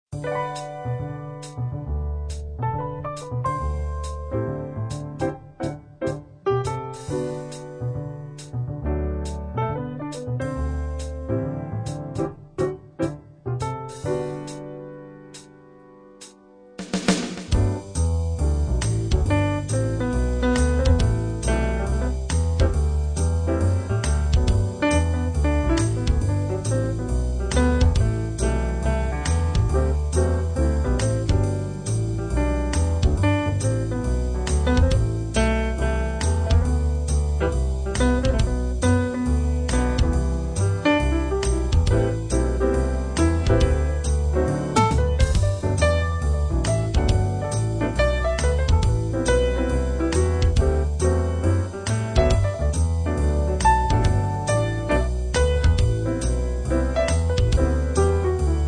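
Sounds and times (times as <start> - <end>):
piano playing: 0.0 - 58.6.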